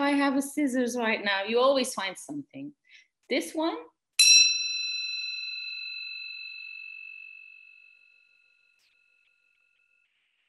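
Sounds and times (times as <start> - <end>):
speech: 0.1 - 3.9
singing bowl being struck and ringing: 4.2 - 10.4.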